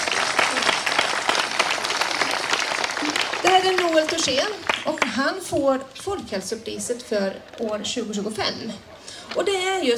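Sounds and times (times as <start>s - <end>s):
audience applause for award recipient: 0.0s - 5.1s
speech: 3.6s - 9.9s.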